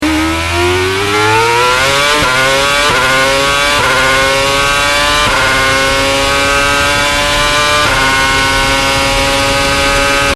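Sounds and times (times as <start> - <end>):
acceleration phone tones: 0.0 - 10.3.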